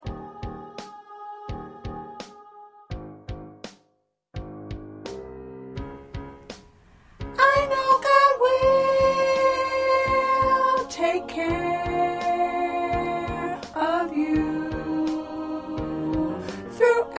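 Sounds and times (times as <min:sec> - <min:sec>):
soprano singing: 0:00.0 - 0:03.0, 0:07.3 - 0:17.1.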